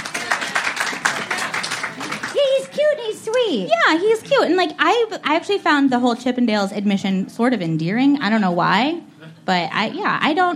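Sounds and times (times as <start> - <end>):
audience clapping: 0.0 - 2.9
speech: 3.5 - 10.5.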